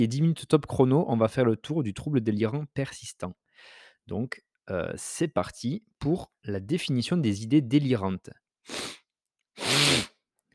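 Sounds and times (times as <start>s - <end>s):
speech: 0.0s - 9.0s
hard congested sniffs through a blocked nose: 9.6s - 10.2s.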